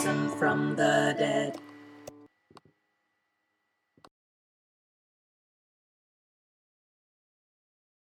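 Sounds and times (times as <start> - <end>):
bass voice singing an Easter hymn: 0.0 - 1.6.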